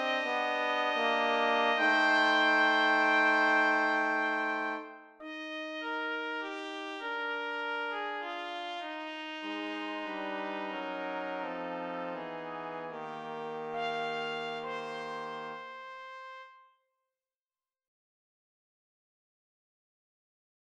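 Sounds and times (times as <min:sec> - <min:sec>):
brass quartet playing a Christmas carol: 0:00.0 - 0:16.5.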